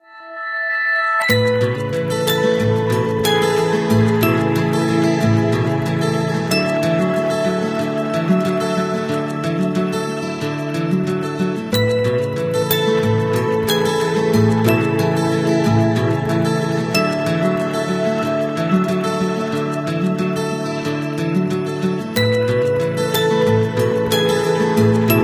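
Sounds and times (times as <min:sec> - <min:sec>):
guitar: 0:00.0 - 0:25.2.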